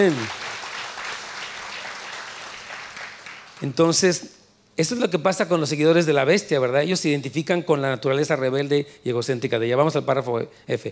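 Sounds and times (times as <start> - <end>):
speech: 0.0 - 0.4, 3.6 - 10.9
audience applauding: 0.0 - 3.8.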